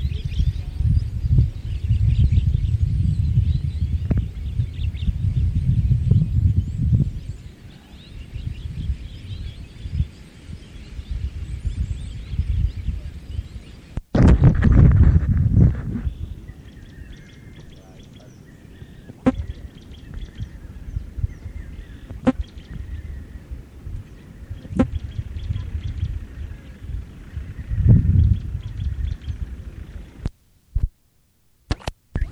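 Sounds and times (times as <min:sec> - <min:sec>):
birds: 0:00.0 - 0:30.9, 0:31.7 - 0:32.3.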